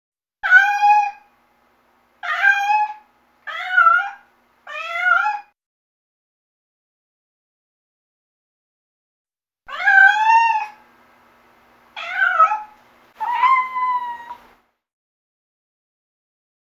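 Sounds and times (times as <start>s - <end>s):
cat meowing: 0.4s - 1.3s, 2.2s - 5.5s, 9.7s - 10.8s, 12.0s - 14.6s.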